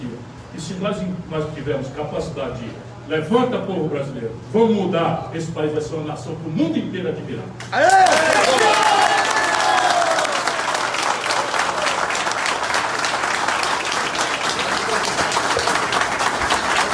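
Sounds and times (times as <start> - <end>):
speech: 0.6 - 8.4
crowd applause: 7.7 - 16.9.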